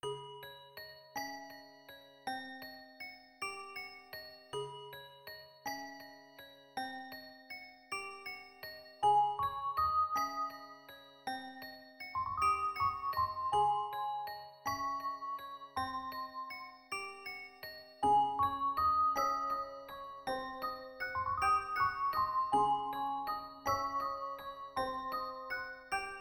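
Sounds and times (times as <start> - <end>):
lullaby music: 0.0 - 26.1.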